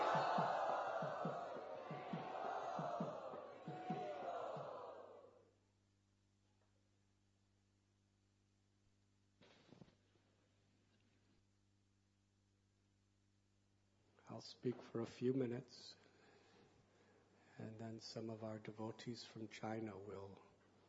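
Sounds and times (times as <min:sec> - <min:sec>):
crowd loudly chanting in welcome: 0:00.0 - 0:05.4
speech: 0:14.4 - 0:16.0, 0:17.6 - 0:20.5.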